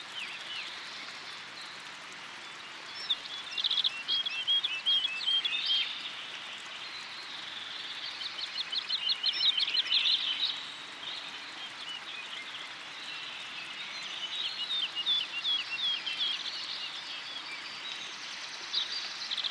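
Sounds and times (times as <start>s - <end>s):
forest ambience: 0.0s - 19.4s.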